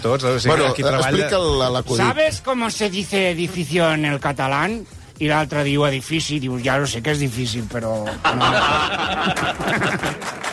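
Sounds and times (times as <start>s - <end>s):
speech: 0.0s - 10.4s
prerecorded crowd laughter: 8.1s - 10.5s
prerecorded applause: 9.2s - 10.5s.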